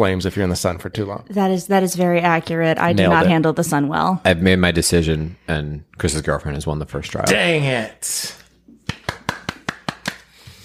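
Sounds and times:
speech: 0.0s - 8.4s
hand clapping: 8.7s - 10.6s.

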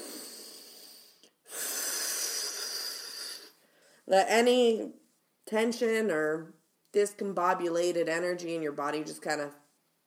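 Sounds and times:
person taking a deep breath: 0.0s - 4.1s
speech: 4.1s - 9.6s.

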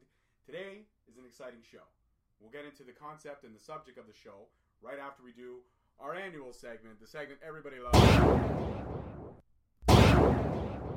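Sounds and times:
speech: 0.5s - 8.8s
gunshot sound effect for the Shots fired segment: 7.9s - 10.9s.

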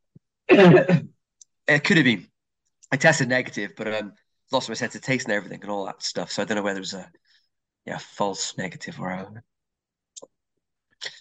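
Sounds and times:
person coughing: 0.5s - 1.1s
speech: 0.5s - 1.1s, 1.7s - 2.3s, 2.9s - 9.5s.

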